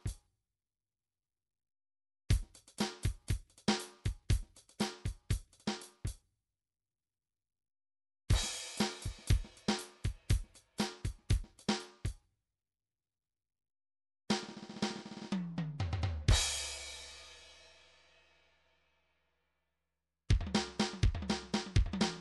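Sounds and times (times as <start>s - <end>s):
midi drums: 2.3s - 6.2s, 8.3s - 12.2s, 14.3s - 17.2s, 20.3s - 22.2s.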